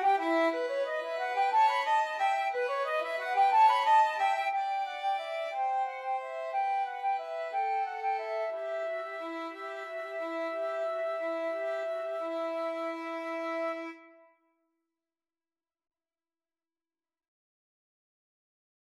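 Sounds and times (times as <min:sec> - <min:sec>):
violin in a flute and violin duet: 0:00.0 - 0:14.3
flute in a flute and violin duet: 0:00.0 - 0:14.4.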